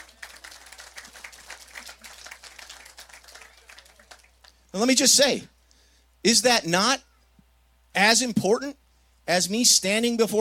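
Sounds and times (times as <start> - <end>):
audience clapping: 0.0 - 4.7
speech: 4.7 - 5.5, 6.2 - 7.1, 8.0 - 10.3.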